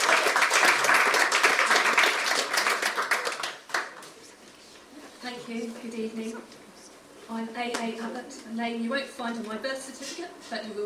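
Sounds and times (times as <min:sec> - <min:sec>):
audience applause: 0:00.0 - 0:04.0
speech: 0:05.8 - 0:06.6, 0:07.3 - 0:10.8.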